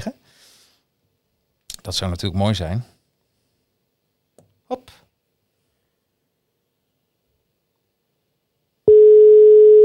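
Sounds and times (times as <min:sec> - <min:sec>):
speech: 0:01.8 - 0:03.0
telephone ringing tone while placing a call: 0:08.9 - 0:09.8.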